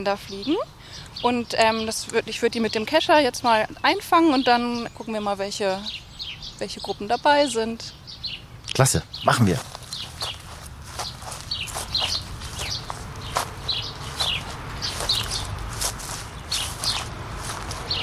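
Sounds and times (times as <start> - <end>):
speech: 0.0 - 8.0, 8.8 - 10.4
birds chirping: 0.0 - 18.0
footsteps crossing a flowering meadow: 9.4 - 18.0.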